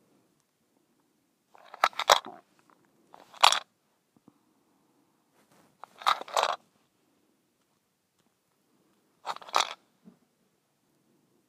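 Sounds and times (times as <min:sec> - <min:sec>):
mint shaker rattling: 0:01.6 - 0:02.4, 0:03.2 - 0:03.6, 0:05.8 - 0:06.6, 0:09.2 - 0:09.8.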